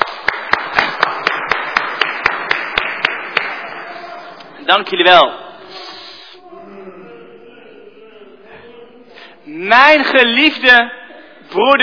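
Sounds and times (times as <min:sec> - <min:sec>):
audience applause: 0:00.0 - 0:04.1
speech: 0:04.7 - 0:05.4, 0:09.5 - 0:11.8.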